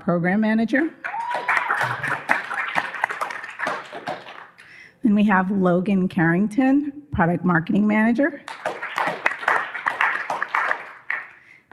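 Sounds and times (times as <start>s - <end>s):
speech: 0.0s - 1.1s, 5.0s - 8.5s
audience round of applause: 1.0s - 4.6s, 8.5s - 11.4s.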